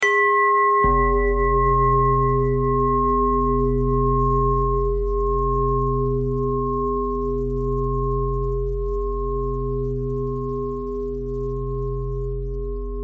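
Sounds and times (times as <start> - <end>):
pentatonic bell melody: 0.0 - 12.9.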